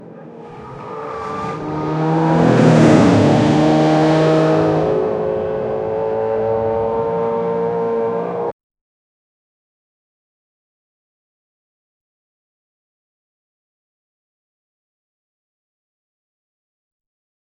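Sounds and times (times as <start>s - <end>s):
car driving too fast: 0.0s - 8.5s.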